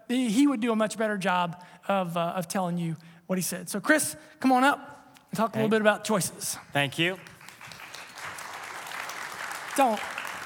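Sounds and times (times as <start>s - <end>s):
speech: 0.1s - 7.3s, 9.8s - 10.2s
audience applause: 7.1s - 10.4s.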